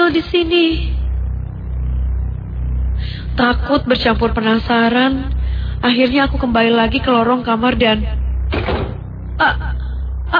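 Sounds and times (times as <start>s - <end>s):
low steady hum: 0.0s - 10.3s
speech: 0.1s - 0.9s, 3.4s - 8.7s, 9.4s - 9.6s
room door at the far end of a corridor swinging shut on its own: 8.5s - 9.1s.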